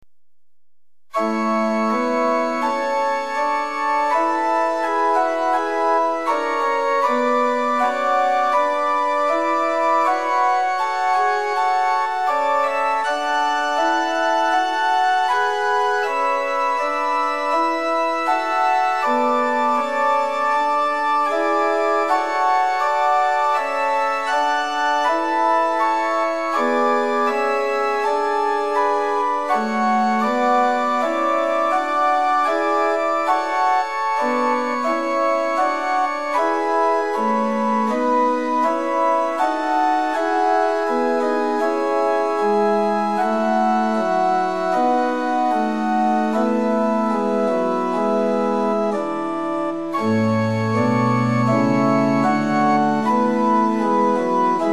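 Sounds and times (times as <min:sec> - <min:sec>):
liturgical organ at pitch 440 in equal temperament: 0:01.1 - 0:54.7.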